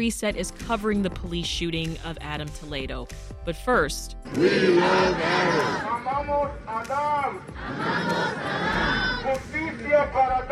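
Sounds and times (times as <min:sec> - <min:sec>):
speech: 0:00.0 - 0:10.5
protest crowd chanting at peace walk: 0:04.3 - 0:06.0, 0:07.5 - 0:09.8.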